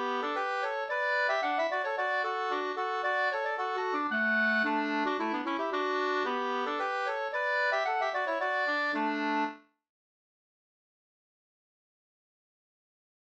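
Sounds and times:
slangpolska folk dance tune: 0.0 - 9.6.

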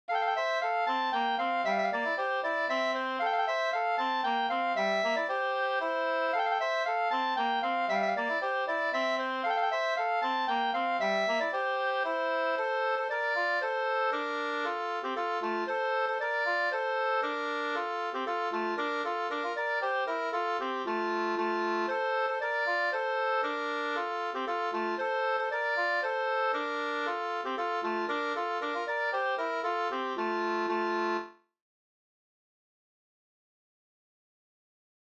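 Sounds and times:
slängpolska folk dance tune: 0.1 - 31.4.

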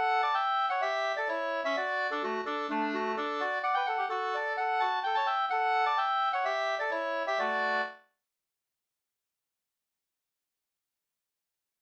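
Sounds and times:
mazurka: 0.0 - 7.9.

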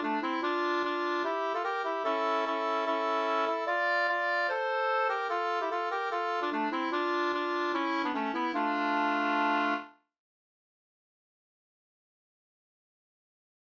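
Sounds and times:
reinlender folk dance music: 0.0 - 9.8.

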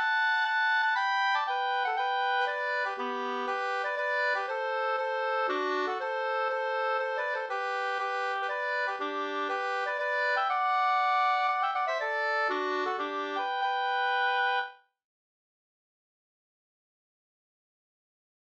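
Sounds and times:
polska dance tune: 0.0 - 14.6.

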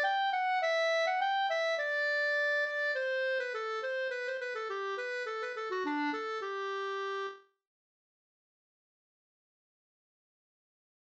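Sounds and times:
folk walking tune: 0.0 - 7.4.

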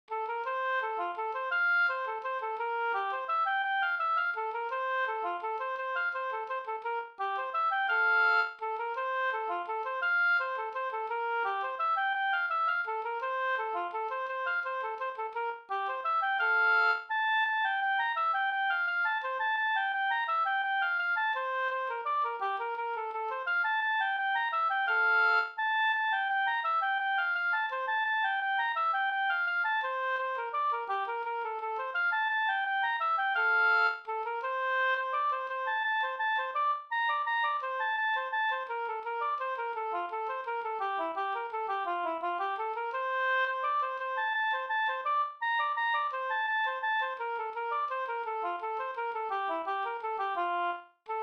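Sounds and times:
waltz music: 0.6 - 39.1, 39.7 - 50.4.

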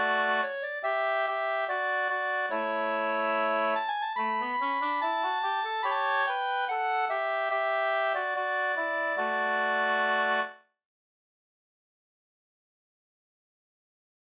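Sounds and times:
bridal march music: 0.0 - 10.5.

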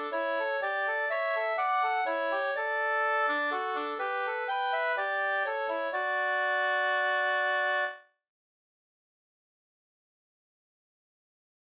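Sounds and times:
two-part bridal church march: 0.0 - 8.0.

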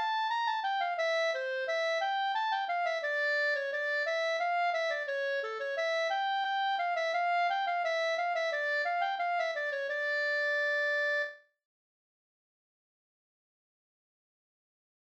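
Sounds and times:
polska folk tune from Lappfjärd: 0.0 - 11.4.

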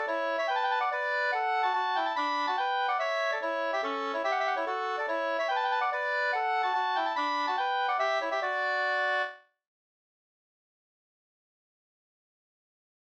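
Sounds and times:
hambo polska folk dance tune: 0.0 - 9.4.

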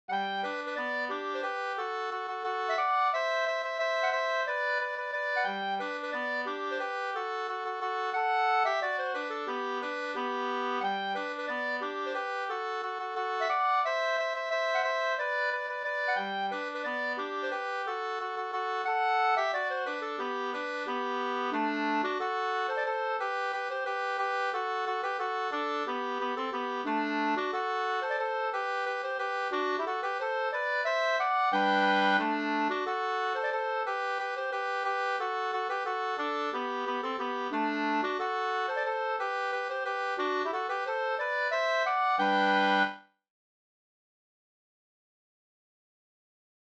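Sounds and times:
polka music: 0.1 - 43.1.

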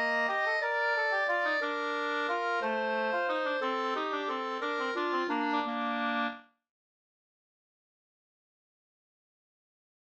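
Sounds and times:
folk dance music in B-flat major: 0.0 - 6.3.

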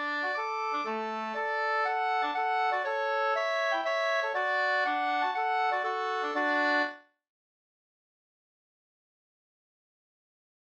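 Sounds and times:
polska dance tune: 0.0 - 7.0.

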